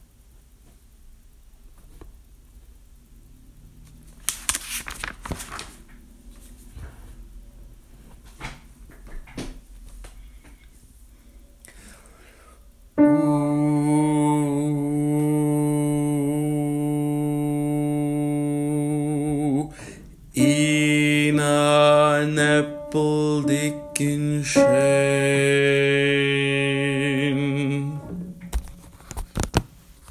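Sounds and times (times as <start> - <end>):
alto part of a chorus singing: 13.0 - 19.7, 20.3 - 28.5.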